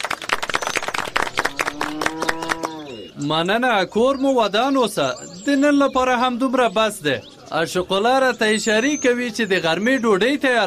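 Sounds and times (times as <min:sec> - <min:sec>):
people clapping hands at a village gathering: 0:00.0 - 0:03.0
speech: 0:01.7 - 0:02.4, 0:03.2 - 0:10.6.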